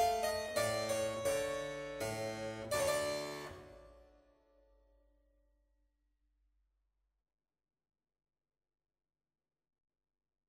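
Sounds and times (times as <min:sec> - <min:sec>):
keyboard sonata on piano: 0:00.0 - 0:04.1.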